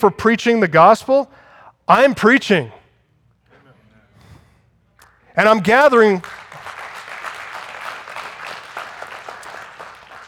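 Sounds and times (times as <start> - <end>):
speech: 0.0 - 2.8, 5.4 - 6.4
audience applause: 5.8 - 10.2.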